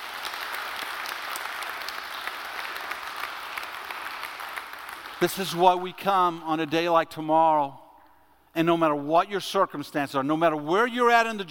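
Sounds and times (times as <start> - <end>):
audience clapping: 0.0 - 5.6
speech: 5.2 - 7.8, 8.6 - 11.4.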